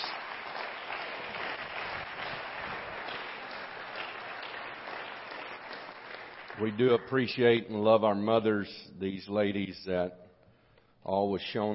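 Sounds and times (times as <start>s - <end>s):
audience clapping: 0.0s - 7.2s
speech: 6.6s - 10.2s, 11.1s - 11.7s.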